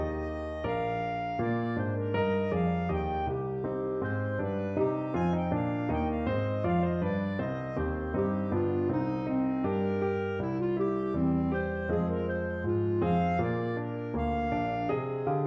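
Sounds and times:
hornpipe played on clarinet: 0.0 - 15.4.

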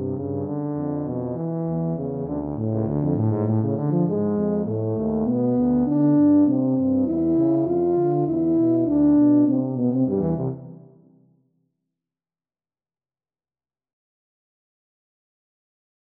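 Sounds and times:
tuba duet: 0.0 - 11.0.

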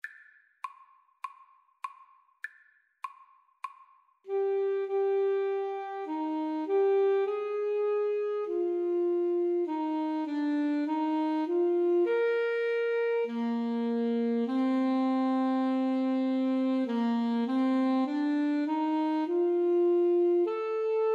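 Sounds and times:
clarinet: 4.3 - 21.1
saxophone: 4.3 - 21.1.

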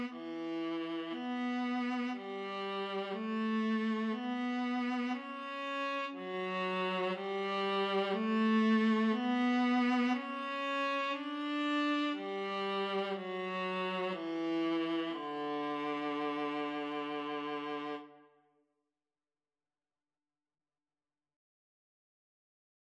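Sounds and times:
cello: 0.0 - 18.3
viola: 0.0 - 18.3.

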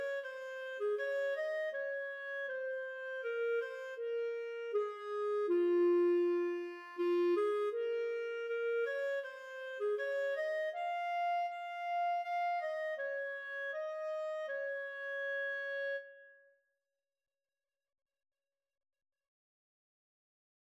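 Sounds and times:
clarinet duet: 0.0 - 16.3.

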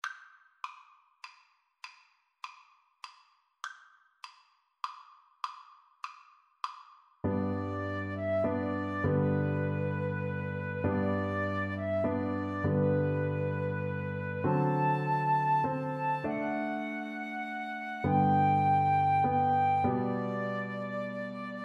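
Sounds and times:
piano trio: 7.3 - 21.6.

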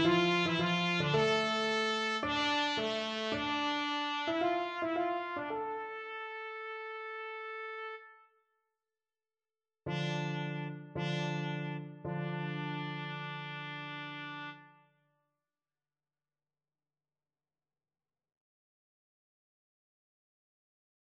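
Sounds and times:
trumpet prelude: 0.0 - 8.2, 9.9 - 14.9.

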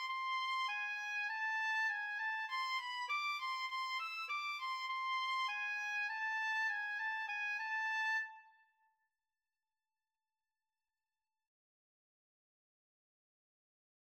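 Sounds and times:
two oboes playing: 0.0 - 8.5.

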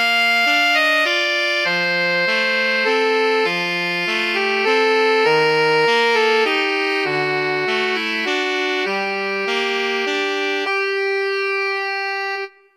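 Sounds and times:
alto saxophone duet: 0.0 - 12.7.

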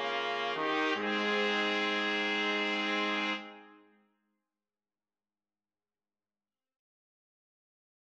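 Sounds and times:
trombone: 0.0 - 3.7
two trumpets: 0.0 - 3.9.

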